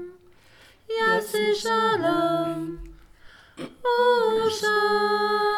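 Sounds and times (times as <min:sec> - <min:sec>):
adult voices: 0:00.9 - 0:03.0, 0:03.6 - 0:05.4.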